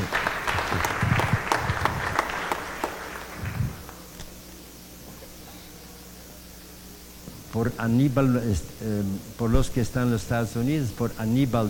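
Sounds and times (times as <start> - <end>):
audience applause: 0.0 - 4.1
speech: 7.6 - 11.6.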